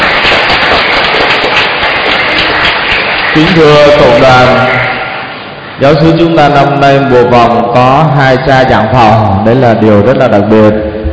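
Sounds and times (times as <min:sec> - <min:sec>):
audience applause: 0:00.0 - 0:05.4
speech: 0:03.4 - 0:04.8, 0:05.8 - 0:10.9.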